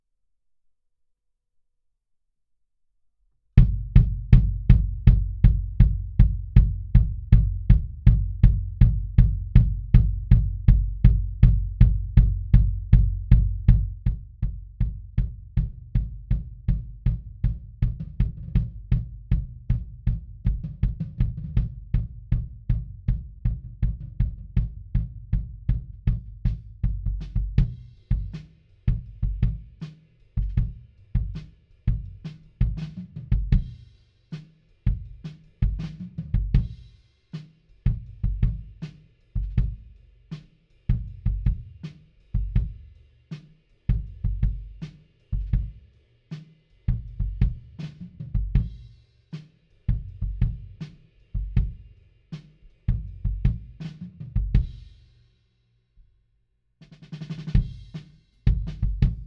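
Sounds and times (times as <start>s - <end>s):
kick drum: 3.6s - 29.8s, 30.4s - 33.8s, 34.9s - 36.9s, 37.9s - 38.8s, 39.4s - 39.9s, 40.9s - 41.8s, 42.4s - 42.9s, 43.9s - 45.8s, 46.9s - 48.9s, 49.9s - 50.8s, 51.4s - 51.8s, 52.9s - 54.9s, 57.4s - 59.2s.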